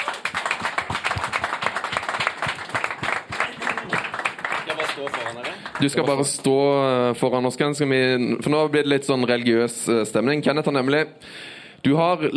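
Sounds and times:
audience applause: 0.0 - 6.2
speech: 5.0 - 12.3.

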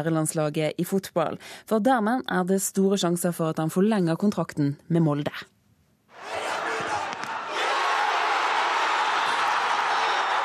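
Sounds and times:
speech: 0.0 - 5.5
football crowd cheering: 6.1 - 10.4.

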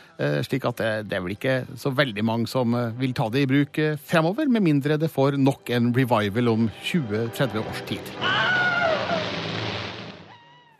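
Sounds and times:
speech: 0.2 - 9.4
Wilhelm Scream stock film sound effect: 8.2 - 9.4.

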